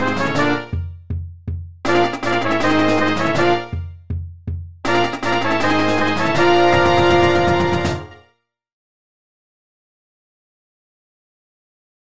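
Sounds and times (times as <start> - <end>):
fight song full percussion: 0.0 - 8.2.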